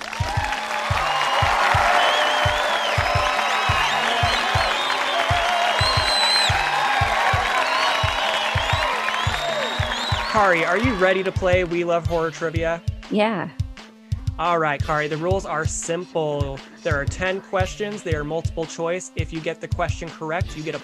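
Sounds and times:
audience applause and cheering for a horror trivia game show contestant: 0:00.0 - 0:11.8
pulsing low beat: 0:00.1 - 0:15.8
speech: 0:10.4 - 0:13.6, 0:14.4 - 0:20.8.

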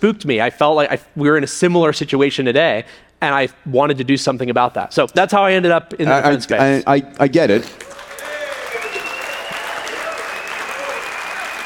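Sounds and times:
speech: 0:00.0 - 0:07.9
large crowd applauding: 0:07.7 - 0:11.6
cheers and whistles: 0:07.9 - 0:11.6.

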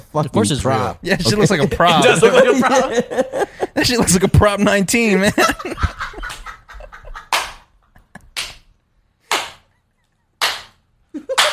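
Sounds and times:
speech: 0:00.1 - 0:05.8
laughter: 0:01.1 - 0:04.3, 0:05.2 - 0:08.6, 0:11.1 - 0:11.5
sharp hand clap to sync audio: 0:07.3 - 0:08.7, 0:09.3 - 0:09.7, 0:10.4 - 0:11.5.

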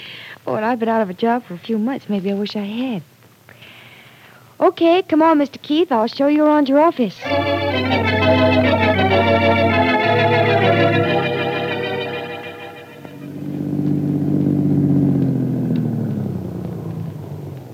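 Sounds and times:
speech: 0:00.4 - 0:03.1, 0:04.6 - 0:11.4
car engine running while driving: 0:13.2 - 0:17.7.

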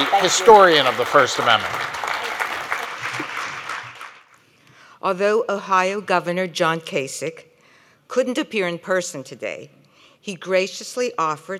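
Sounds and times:
speech: 0:00.0 - 0:02.0, 0:05.0 - 0:07.5, 0:08.1 - 0:11.5
audience applause: 0:00.0 - 0:04.3.

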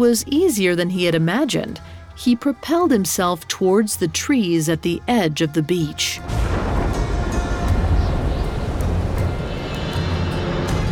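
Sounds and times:
speech: 0:00.0 - 0:06.4
crackling bursts: 0:06.2 - 0:10.9
deafening thunder rumbling: 0:06.2 - 0:10.9.

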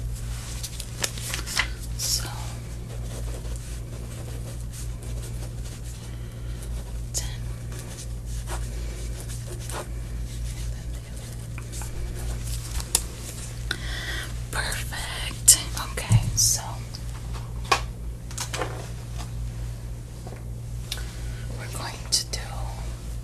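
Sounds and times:
steady low hum: 0:00.0 - 0:23.2
pen scratching as notes are written: 0:02.8 - 0:12.6.

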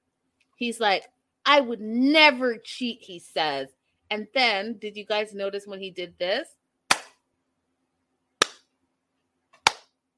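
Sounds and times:
speech: 0:00.6 - 0:06.6
hand clapping: 0:08.4 - 0:08.6, 0:09.6 - 0:09.9.

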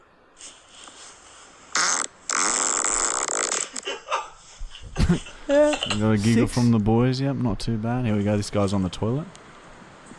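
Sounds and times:
fart: 0:01.7 - 0:03.8
speech: 0:05.1 - 0:09.4.

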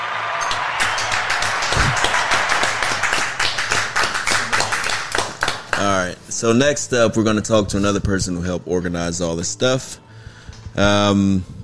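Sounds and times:
applause: 0:00.0 - 0:06.0
speech: 0:05.8 - 0:10.0, 0:10.8 - 0:11.6.

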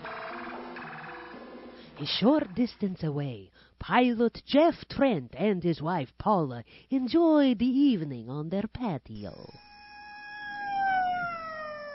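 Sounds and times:
speech: 0:02.0 - 0:09.6
emergency vehicle siren: 0:10.0 - 0:11.9.

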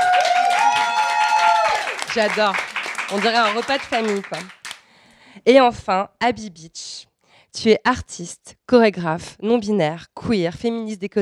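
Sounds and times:
small group applauding: 0:00.0 - 0:04.9
speech: 0:02.1 - 0:04.6, 0:05.4 - 0:11.2.

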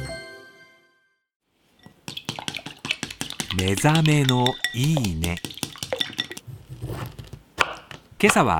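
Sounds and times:
crab omelette cooking: 0:01.9 - 0:06.5
dishes clinking: 0:03.4 - 0:06.4
speech: 0:03.6 - 0:05.6, 0:08.2 - 0:08.5.

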